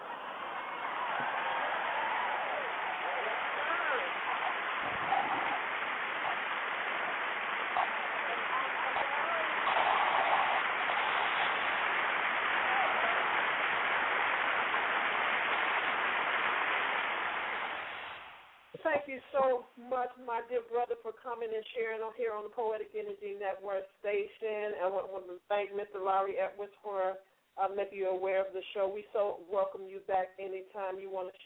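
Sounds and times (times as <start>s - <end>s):
crowd clapping: 0.0s - 18.9s
speech: 19.1s - 31.4s.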